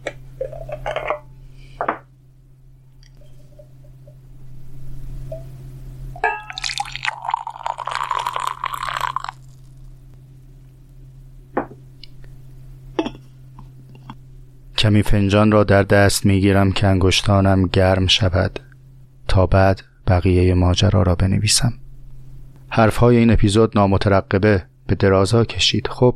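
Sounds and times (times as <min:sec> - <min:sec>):
tea pouring from a bottle into a glass: 0:06.5 - 0:09.8
speech: 0:14.8 - 0:18.6, 0:19.4 - 0:21.8, 0:22.7 - 0:26.1.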